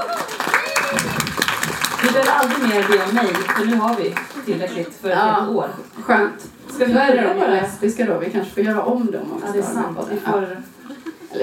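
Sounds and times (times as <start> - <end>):
audience applause: 0.0 - 4.9
speech: 2.2 - 10.7.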